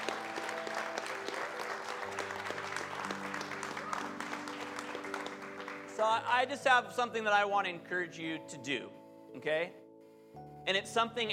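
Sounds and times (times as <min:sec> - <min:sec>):
audience applause: 0:00.0 - 0:06.2
speech: 0:06.0 - 0:11.3.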